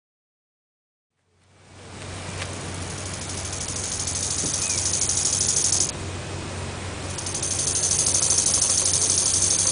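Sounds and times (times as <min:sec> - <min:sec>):
low constant hum: 0:01.3 - 0:09.7
bow-winged grasshopper rasping: 0:02.8 - 0:05.9, 0:07.1 - 0:09.7.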